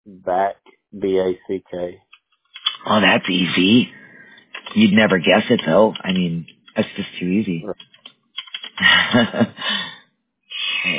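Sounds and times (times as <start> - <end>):
speech: 0.0 - 2.1, 2.8 - 4.0, 4.7 - 7.9, 8.8 - 9.9
laughter: 0.1 - 1.9, 8.6 - 10.0
typing on a computer keyboard: 2.2 - 3.0, 4.5 - 7.0, 7.7 - 8.8.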